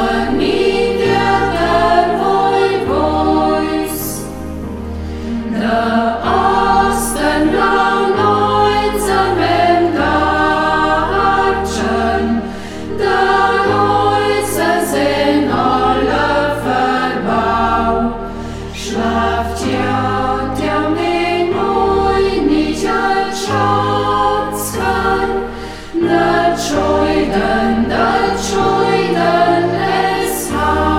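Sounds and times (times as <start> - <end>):
choir singing in Burgberg local dialect: 0.0 - 30.9.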